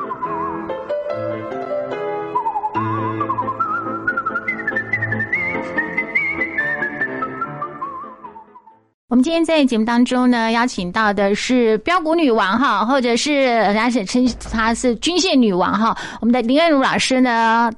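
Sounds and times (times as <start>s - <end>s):
whistled melody: 0.0s - 9.0s
speech: 9.1s - 17.7s.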